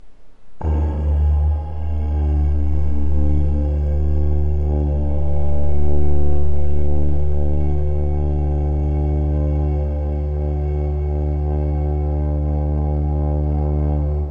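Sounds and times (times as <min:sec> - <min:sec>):
bass: 0:00.0 - 0:14.2.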